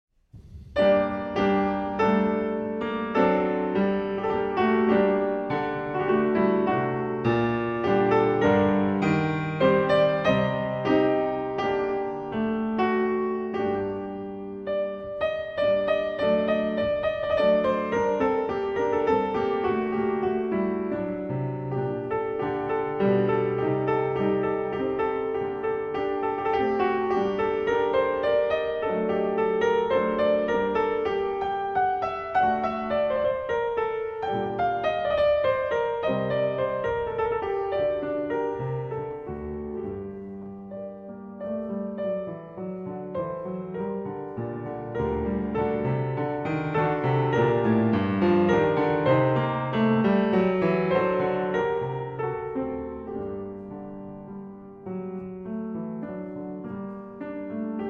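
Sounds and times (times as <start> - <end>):
piano chaconne in G minor: 0.3 - 57.8.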